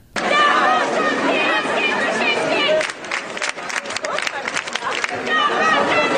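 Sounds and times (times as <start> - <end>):
laughter: 0.2 - 6.1
street protest crowd chanting: 0.2 - 6.1.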